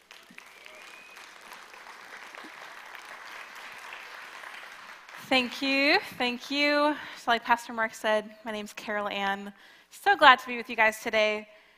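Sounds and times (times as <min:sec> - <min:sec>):
audience applause welcoming a speaker at a church talk: 0:00.0 - 0:05.6
speech: 0:05.3 - 0:11.5.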